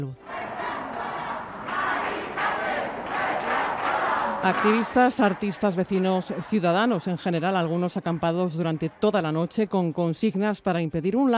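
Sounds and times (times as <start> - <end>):
speech: 0.0 - 0.3, 4.4 - 11.3
crowd shouting protest chants: 0.2 - 9.3.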